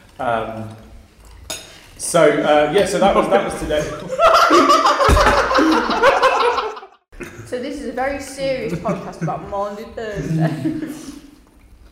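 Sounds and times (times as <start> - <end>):
people eating: 0.0 - 11.8
speech: 0.2 - 0.9, 2.0 - 6.6, 7.5 - 11.2
cutlery on dishes: 1.4 - 1.8
laughter: 2.9 - 7.5, 8.5 - 11.2.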